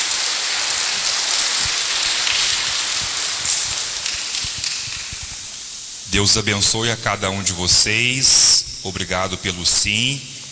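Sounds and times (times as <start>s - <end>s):
round of applause: 0.0s - 5.5s
speech: 6.2s - 10.4s.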